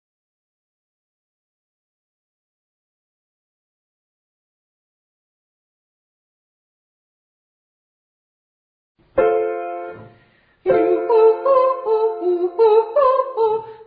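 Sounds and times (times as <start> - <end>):
ascending triads in octaves to high D flat: 9.2 - 13.6.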